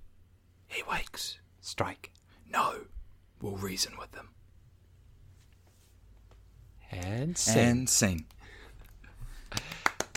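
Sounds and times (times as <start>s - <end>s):
speech: 0.8s - 4.4s, 6.9s - 8.4s
hand clapping: 9.4s - 10.1s.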